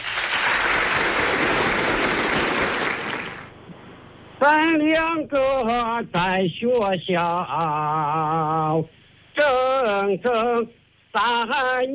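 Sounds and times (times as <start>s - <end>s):
audience applause: 0.0s - 3.5s
speech: 4.4s - 11.9s.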